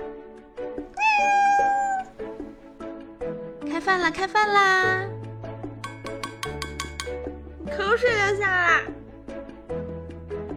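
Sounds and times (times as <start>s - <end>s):
cat meowing: 0.9s - 2.3s
speech: 3.8s - 5.1s, 7.7s - 9.0s.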